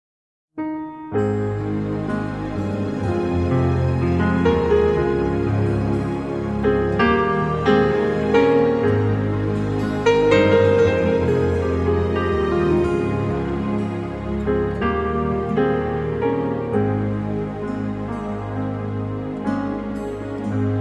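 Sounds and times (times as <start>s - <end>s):
brass music: 1.2s - 20.7s.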